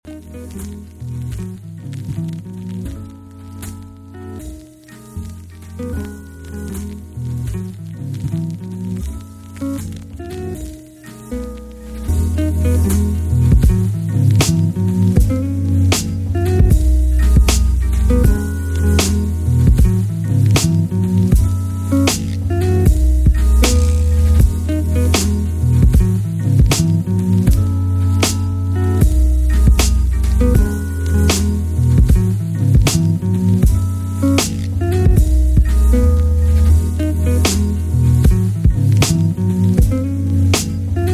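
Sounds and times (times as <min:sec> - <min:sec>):
dusty instrumental groove: 0:00.0 - 0:41.1.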